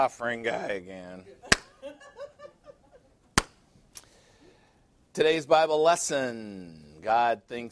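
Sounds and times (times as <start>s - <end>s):
speech: 0.0s - 2.0s, 5.2s - 7.7s
giggling laughter: 1.3s - 3.3s
slow single hand clap: 1.5s - 1.7s, 3.4s - 4.1s.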